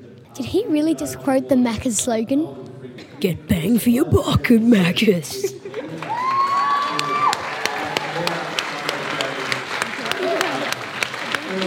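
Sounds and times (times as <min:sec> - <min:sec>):
speech: 0:00.4 - 0:05.7
crowd applause and clapping: 0:05.7 - 0:11.6.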